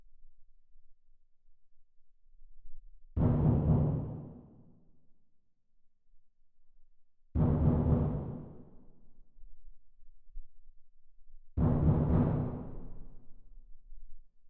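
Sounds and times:
percussion: 3.2 - 4.7, 7.4 - 8.7, 11.6 - 13.0.

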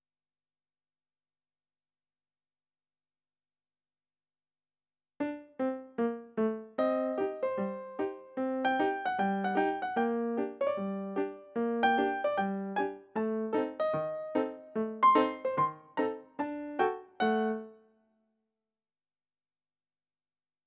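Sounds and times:
ragtime piano: 5.2 - 17.7.

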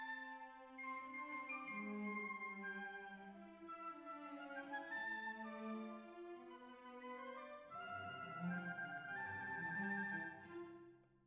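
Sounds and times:
violins: 0.2 - 10.8.

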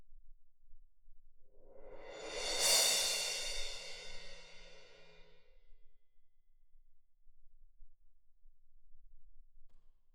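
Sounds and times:
percussion: 1.7 - 5.3.

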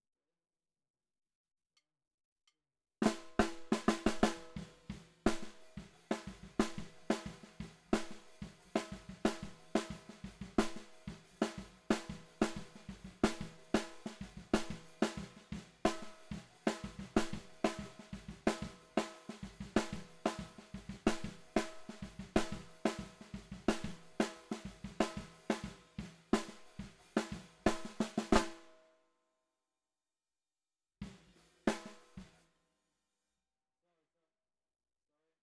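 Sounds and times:
bottom snare drum: 3.0 - 28.8, 31.0 - 32.4.

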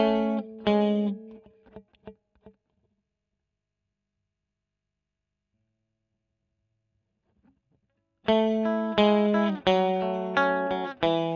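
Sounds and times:
electric guitar recorded with Royer microphone: 0.0 - 2.1, 8.3 - 11.3.

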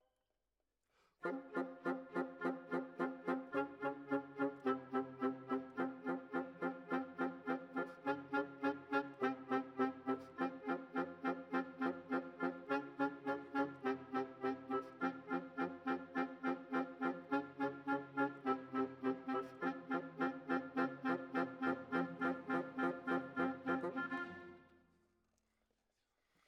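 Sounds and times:
clarinet: 1.2 - 24.9.

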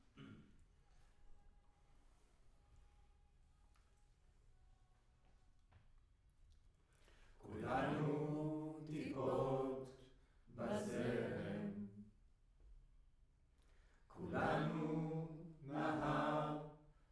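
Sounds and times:
choir singing in room: 7.4 - 12.1, 14.1 - 16.9.

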